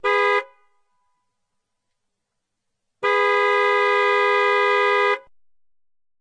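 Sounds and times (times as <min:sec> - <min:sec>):
car horn: 0:00.0 - 0:01.4, 0:03.0 - 0:05.3.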